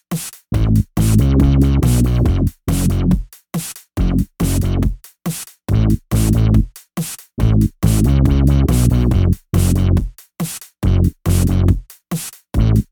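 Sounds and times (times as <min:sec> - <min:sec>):
bass: 0:00.5 - 0:03.2, 0:04.0 - 0:05.0, 0:05.7 - 0:06.7, 0:07.4 - 0:10.1, 0:10.8 - 0:11.8, 0:12.6 - 0:12.8.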